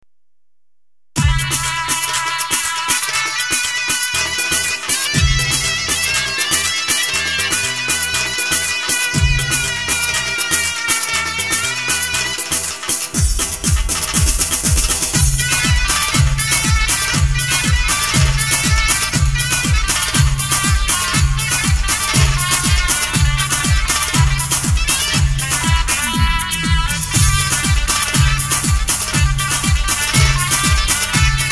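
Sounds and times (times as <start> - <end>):
tekno halay music on Roland GW 8: 1.2 - 31.5.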